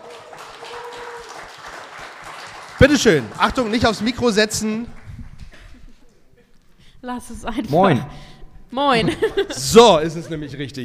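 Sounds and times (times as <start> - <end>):
audience applause: 0.0 - 5.7
speech: 2.8 - 5.0, 7.1 - 10.8
laughter: 5.4 - 6.7, 8.9 - 10.7.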